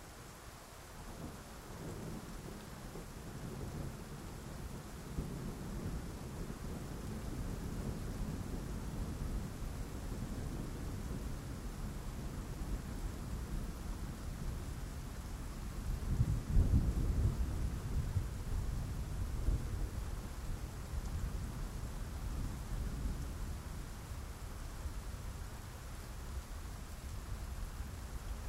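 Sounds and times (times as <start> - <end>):
soothing rain: 0.0 - 28.4.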